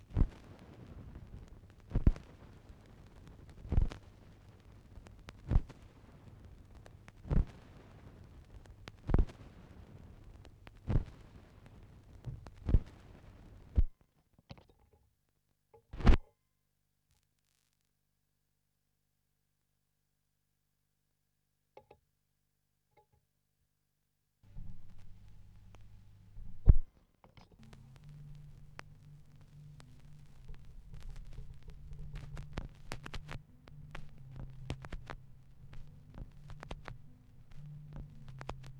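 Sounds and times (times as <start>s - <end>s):
vinyl record crackle: 0.0s - 13.9s, 24.5s - 38.7s.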